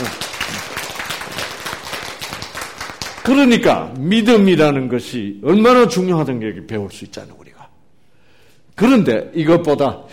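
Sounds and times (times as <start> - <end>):
audience applause: 0.0 - 3.4
speech: 3.2 - 7.6, 8.8 - 10.1.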